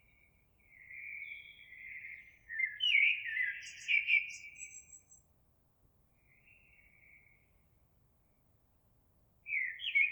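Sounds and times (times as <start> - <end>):
Eurasian blackbird singing: 1.0 - 5.0.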